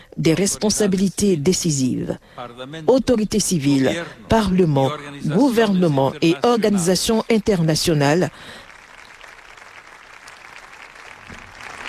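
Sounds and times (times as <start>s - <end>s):
speech: 0.2s - 8.6s
audience applauding a speech: 8.2s - 11.8s.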